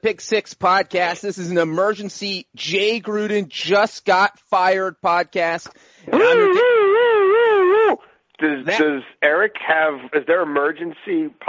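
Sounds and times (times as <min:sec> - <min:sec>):
speech: 0:00.0 - 0:06.7, 0:08.4 - 0:11.4
person imitating a siren: 0:06.1 - 0:08.1.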